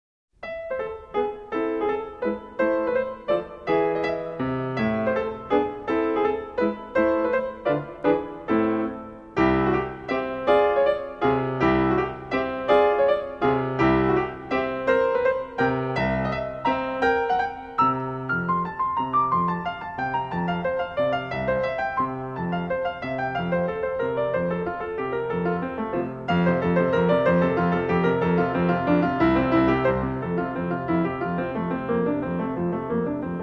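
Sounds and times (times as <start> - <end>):
classical sonatina in A minor: 0.3 - 33.4.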